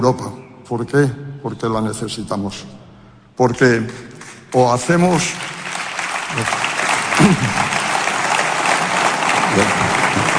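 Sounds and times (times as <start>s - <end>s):
speech: 0.0s - 2.8s, 3.4s - 5.5s, 6.3s - 6.6s, 7.2s - 7.7s
audience applause: 5.1s - 10.3s.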